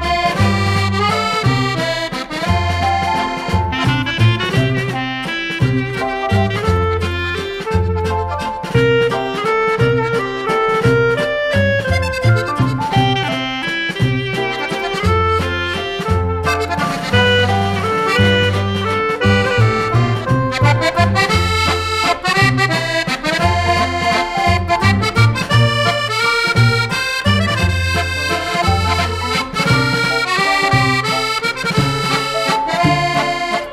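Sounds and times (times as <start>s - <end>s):
musette accordion: 0.0s - 33.7s.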